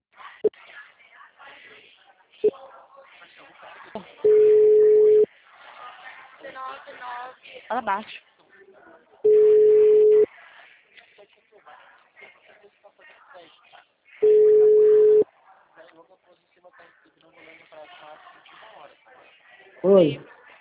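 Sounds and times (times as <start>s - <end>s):
phone line beeps after a dropped call: 4.2s - 5.3s, 9.3s - 10.3s, 14.2s - 15.2s
speech: 7.7s - 8.3s, 19.8s - 20.3s.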